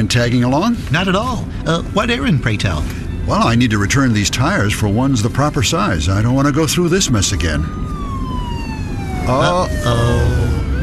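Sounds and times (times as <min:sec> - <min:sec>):
speech: 0:00.1 - 0:07.9, 0:09.3 - 0:10.6
police car siren: 0:03.1 - 0:10.8.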